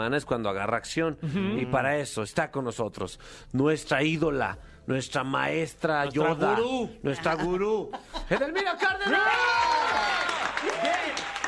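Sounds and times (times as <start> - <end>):
speech: 0.0 - 11.2
laughter: 7.2 - 9.5
voices calling out and whooping excitedly: 9.1 - 11.4
steady audience applause: 9.3 - 11.4.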